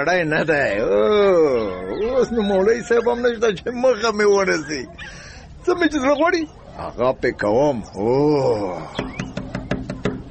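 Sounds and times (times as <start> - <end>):
speech: 0.0 - 9.2
knuckles knocking on the door of a hujra: 9.0 - 10.2.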